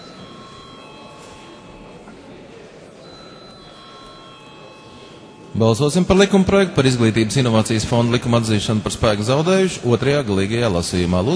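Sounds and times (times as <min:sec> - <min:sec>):
parliament voting electric bell ringing: 0:00.0 - 0:02.1, 0:03.0 - 0:06.2
speech: 0:05.6 - 0:11.3.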